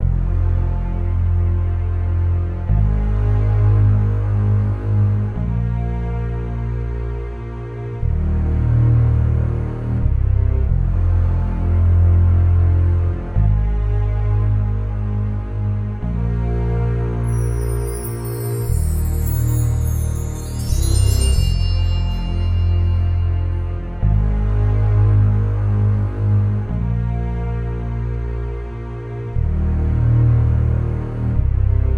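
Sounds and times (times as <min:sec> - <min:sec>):
bass: 0:00.0 - 0:31.9
cello: 0:00.0 - 0:31.9.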